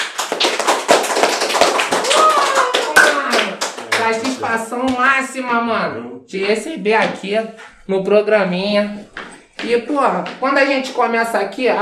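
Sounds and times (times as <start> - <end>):
people clapping: 0.0 - 5.4
speech: 4.1 - 11.7.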